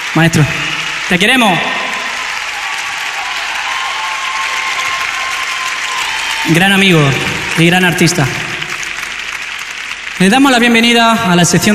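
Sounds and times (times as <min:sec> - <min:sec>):
audience applause at the Royal Albert Hall: 0:00.0 - 0:11.7
speech: 0:00.2 - 0:01.8, 0:06.5 - 0:08.5, 0:10.2 - 0:11.7.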